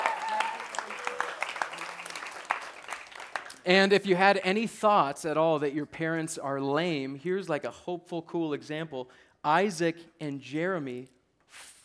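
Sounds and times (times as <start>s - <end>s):
audience round of applause: 0.0s - 3.6s
speech: 3.6s - 11.7s.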